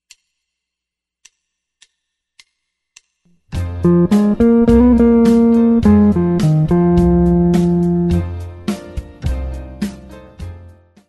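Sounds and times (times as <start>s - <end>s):
guitar: 3.6s - 9.1s.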